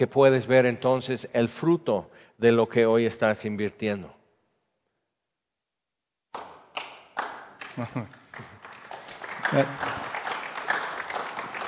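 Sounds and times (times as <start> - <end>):
speech: 0.0 - 4.2, 7.8 - 8.5, 9.5 - 10.1
audience applause started by one person clapping: 7.2 - 11.6.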